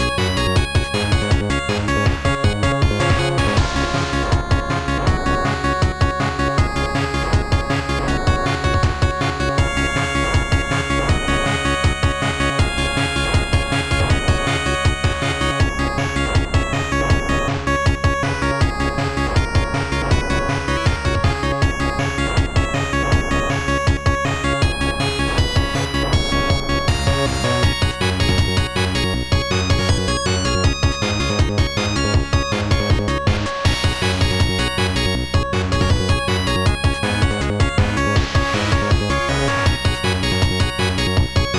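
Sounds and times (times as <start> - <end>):
internal percussion: 0.0 - 41.5.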